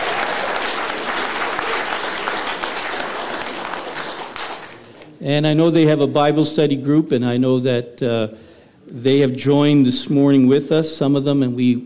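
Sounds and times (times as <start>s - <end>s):
crowd applauding newlyweds: 0.0s - 5.2s
speech: 5.2s - 11.8s.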